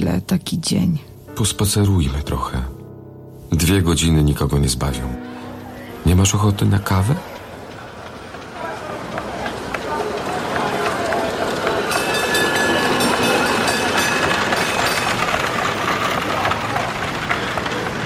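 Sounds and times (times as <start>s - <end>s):
speech: 0.0s - 2.7s, 3.5s - 5.3s, 6.0s - 7.3s
electric tram rumbling along rails on a city street: 3.6s - 18.0s
murmur of passing pedestrians' voices: 5.2s - 18.0s.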